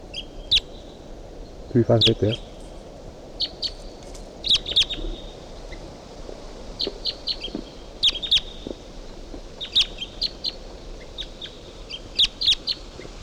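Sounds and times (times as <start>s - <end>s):
wild bird calling from a pine: 0.1s - 1.0s, 1.6s - 13.2s
speech: 1.7s - 2.5s.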